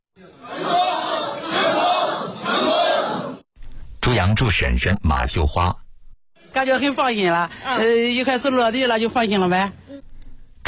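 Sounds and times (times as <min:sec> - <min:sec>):
crowd cheering: 0:00.3 - 0:03.4
speech: 0:04.2 - 0:05.8, 0:06.6 - 0:10.0.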